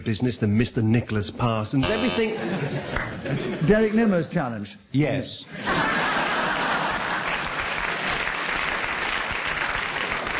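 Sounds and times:
speech: 0:00.0 - 0:06.0
laughter: 0:02.2 - 0:03.8, 0:05.5 - 0:07.5
audience applause: 0:05.9 - 0:10.3.

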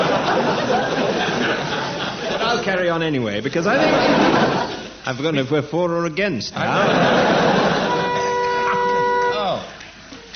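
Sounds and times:
laughter: 0:00.0 - 0:02.8, 0:03.6 - 0:05.0, 0:06.6 - 0:09.2
speech: 0:02.6 - 0:07.5
quiz show buzzer: 0:07.5 - 0:09.7.

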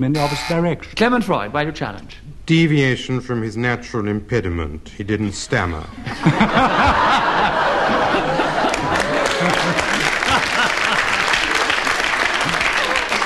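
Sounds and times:
speech: 0:00.0 - 0:07.5
audience laughing and chuckling: 0:05.9 - 0:13.2
audience applause: 0:06.8 - 0:13.2.

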